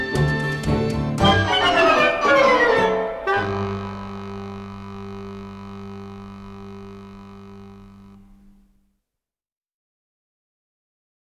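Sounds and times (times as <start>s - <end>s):
samba music: 0.0s - 5.0s.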